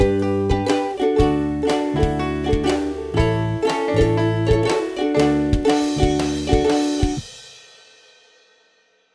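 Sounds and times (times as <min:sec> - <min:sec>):
ukulele: 0:00.0 - 0:07.3.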